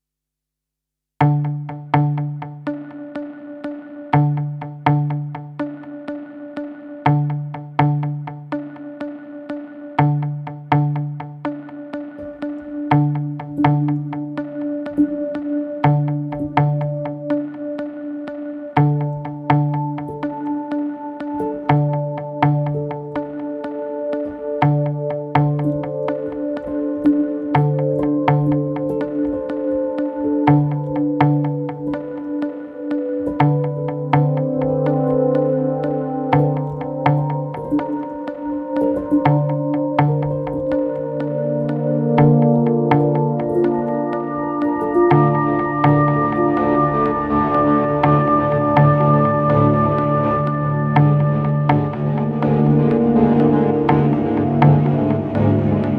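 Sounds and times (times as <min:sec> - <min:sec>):
slow tension music: 0:01.2 - 0:55.9.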